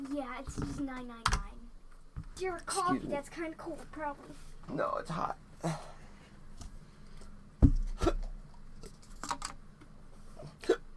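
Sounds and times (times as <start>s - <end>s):
speech: 0.2s - 1.5s, 2.4s - 6.0s
hiccups: 10.4s - 10.9s.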